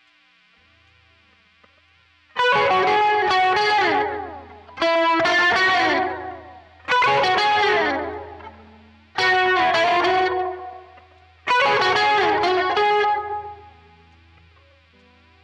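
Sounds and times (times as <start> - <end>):
guitar solo through a Quilter amplifier: 2.4 - 14.0.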